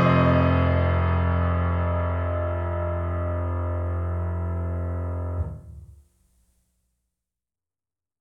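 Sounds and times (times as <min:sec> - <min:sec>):
rosewood grand piano: 0:00.0 - 0:05.9.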